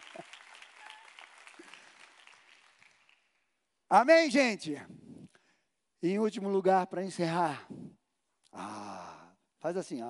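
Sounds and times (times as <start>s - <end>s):
audience applause: 0.0s - 3.4s
speech: 3.9s - 5.0s, 6.0s - 7.8s, 9.6s - 10.0s.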